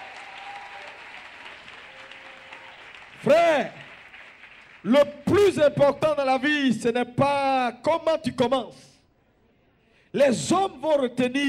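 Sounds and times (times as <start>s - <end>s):
congregation applauding at a French-speaking church service: 0.0s - 5.7s
speech: 3.2s - 3.8s, 4.8s - 8.9s, 10.1s - 11.4s.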